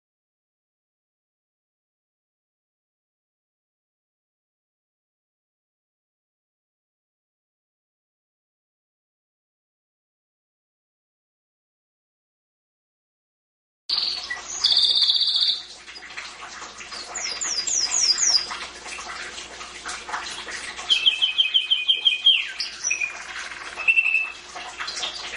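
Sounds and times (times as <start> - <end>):
canary singing trills: 13.9 - 15.7, 17.1 - 18.5, 20.9 - 24.4.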